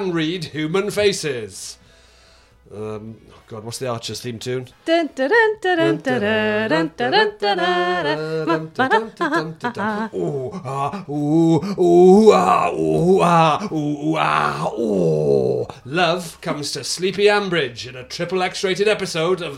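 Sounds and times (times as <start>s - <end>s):
speech: 0.0s - 1.8s, 2.7s - 19.5s
voice imitating sex noises with moans and groans: 8.0s - 15.8s.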